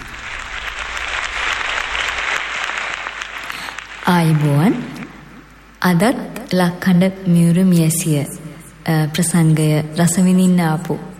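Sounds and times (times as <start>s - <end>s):
audience applauding a veteran female singer at a live song concert: 0.0s - 5.3s
speech: 4.1s - 4.9s, 5.8s - 11.1s.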